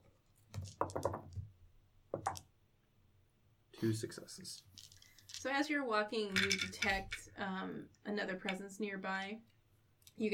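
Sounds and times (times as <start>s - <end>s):
dice clattering across a hard surface: 0.5s - 1.5s, 4.5s - 5.6s, 6.3s - 7.3s
speech: 3.8s - 4.8s, 5.4s - 9.5s, 10.2s - 10.3s.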